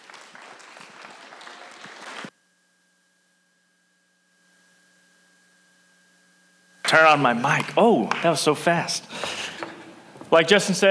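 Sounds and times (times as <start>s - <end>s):
audience applauding: 0.0s - 2.3s, 6.9s - 10.8s
speech: 6.9s - 9.4s, 10.3s - 10.8s.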